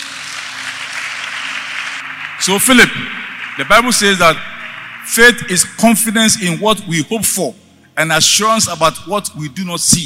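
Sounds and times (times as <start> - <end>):
audience clapping: 0.0 - 5.8
speech: 2.4 - 10.0.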